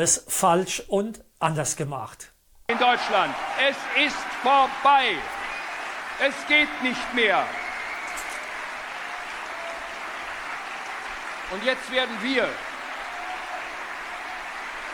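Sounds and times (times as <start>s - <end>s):
speech: 0.0s - 5.4s, 6.2s - 7.6s, 11.5s - 12.7s
audience clapping: 2.7s - 14.9s.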